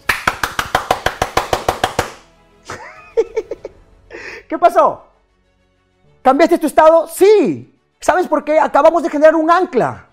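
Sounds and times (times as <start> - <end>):
audience clapping: 0.0 - 2.2
speech: 4.5 - 5.1, 6.3 - 10.1.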